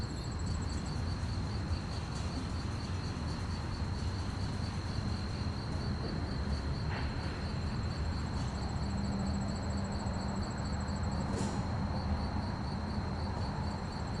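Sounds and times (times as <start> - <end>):
crickets chirping fast on a quiet street at night: 0.0 - 14.1
slight wind: 0.0 - 14.1.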